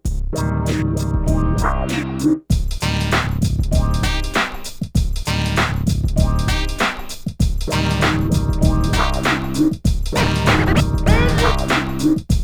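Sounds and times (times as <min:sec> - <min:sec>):
98 BPM hip hop beat: 0:00.7 - 0:12.4.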